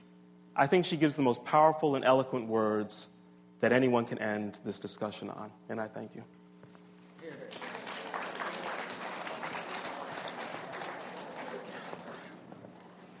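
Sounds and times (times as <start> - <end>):
speech: 0.6 - 6.4
audience applause: 7.2 - 13.1.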